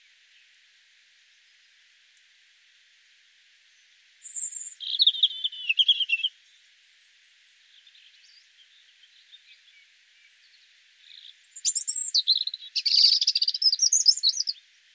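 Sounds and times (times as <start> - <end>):
European robin song: 3.7 - 14.6.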